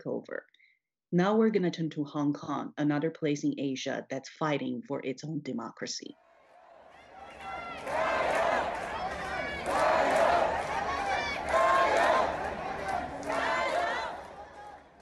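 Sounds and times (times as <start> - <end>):
speech: 0.0 - 6.2
crowds cheering outside a courthouse in Hong Kong: 6.2 - 15.0.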